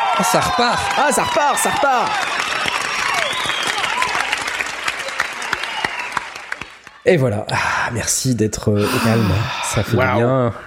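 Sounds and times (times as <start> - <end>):
audience applause: 0.0 - 7.0
speech: 0.2 - 2.4, 7.0 - 10.6.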